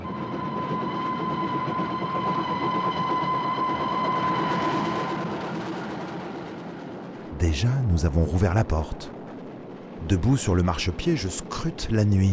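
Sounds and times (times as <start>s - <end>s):
high whine: 0.0s - 10.6s
train rumbling on rails gathering pace: 0.0s - 12.3s
speech: 7.5s - 9.2s, 10.1s - 12.3s.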